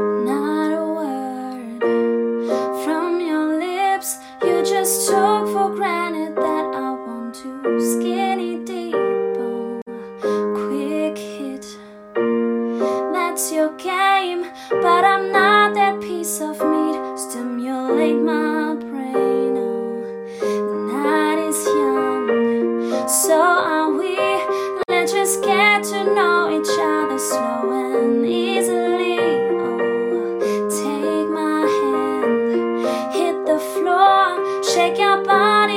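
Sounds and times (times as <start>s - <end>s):
ballade singing: 0.1s - 11.9s, 12.8s - 35.7s.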